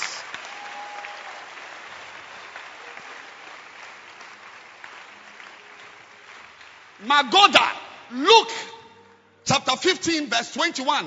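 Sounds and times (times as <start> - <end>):
audience clapping hands: 0.0 - 8.1
speech: 7.0 - 8.7, 9.5 - 11.0.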